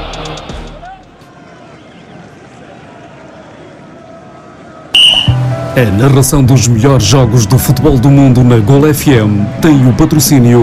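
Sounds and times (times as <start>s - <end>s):
referee's whistle starting the second half of Famalicão Sporting: 5.0s - 5.5s
speech: 5.8s - 10.6s.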